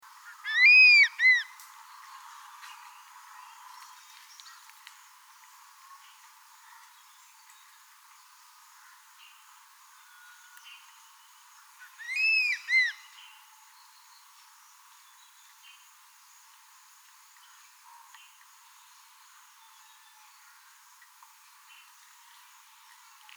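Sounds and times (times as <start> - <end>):
crested serpent eagle whistled call: 0.5 - 1.5, 12.0 - 13.0.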